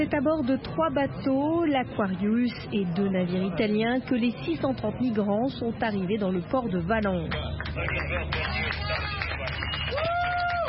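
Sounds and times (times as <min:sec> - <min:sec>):
speech: 0:00.0 - 0:09.2
murmur of overlapping voices: 0:00.0 - 0:09.9
crowd clapping at harbour arrival: 0:07.1 - 0:10.6
whistle-like tone: 0:09.5 - 0:10.1.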